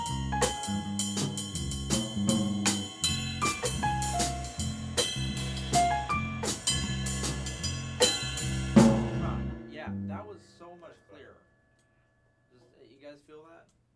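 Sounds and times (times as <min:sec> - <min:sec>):
solo jazz piano: 0:00.0 - 0:09.5.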